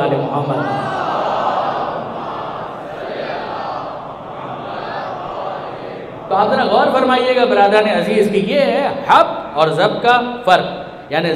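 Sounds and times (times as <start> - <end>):
speech: 0.3 - 0.9, 6.3 - 11.3
large crowd chanting in unison: 0.4 - 7.1.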